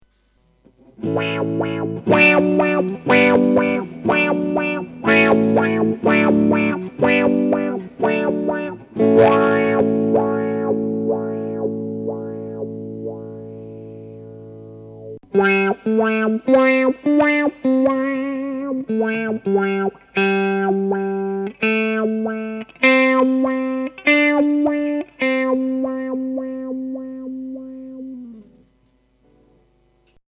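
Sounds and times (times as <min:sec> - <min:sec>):
Morley Kiko wah pedal effect: 0:00.7 - 0:29.4.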